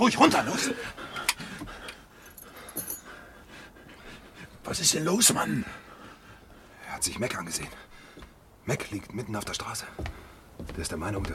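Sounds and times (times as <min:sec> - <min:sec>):
speech: 0:00.0 - 0:01.1, 0:04.7 - 0:05.8, 0:07.0 - 0:07.9, 0:08.7 - 0:11.3
handcuffs clacking and rattling as they are unlocked: 0:01.9 - 0:03.2
keys jangling against metal unlocking handcuffs: 0:02.2 - 0:03.2.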